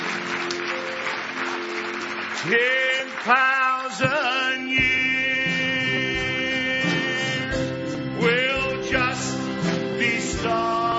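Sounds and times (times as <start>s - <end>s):
audience hand clapping in praise: 0.0s - 6.4s
sustained organ-like tones: 0.3s - 10.9s
speech: 2.4s - 5.3s
rising vocal swells: 4.0s - 7.9s.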